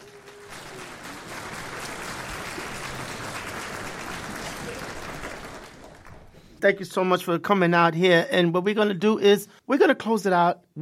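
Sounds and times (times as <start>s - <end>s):
crowd round of applause: 0.0s - 6.6s
speech: 6.6s - 10.7s.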